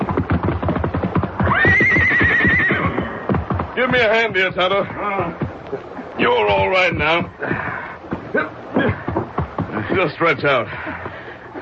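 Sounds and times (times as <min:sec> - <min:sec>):
horse hooves galloping: 0:00.0 - 0:11.6
horse whinny: 0:01.4 - 0:03.3
speech: 0:03.8 - 0:07.7, 0:08.4 - 0:08.6, 0:10.0 - 0:10.9.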